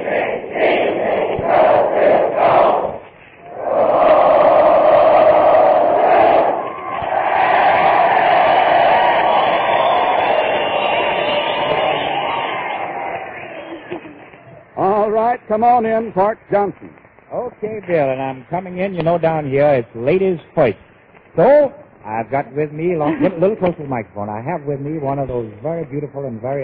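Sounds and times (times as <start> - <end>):
college freshmen crowd cheering and shouting: 0.0 - 14.8
speech: 15.6 - 26.6.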